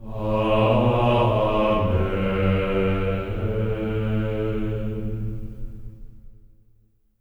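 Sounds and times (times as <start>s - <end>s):
choir voices in A3: 0.0s - 5.6s.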